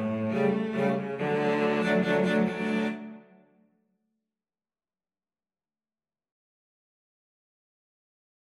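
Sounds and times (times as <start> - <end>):
cello quartet playing a waltz: 0.0 - 3.3.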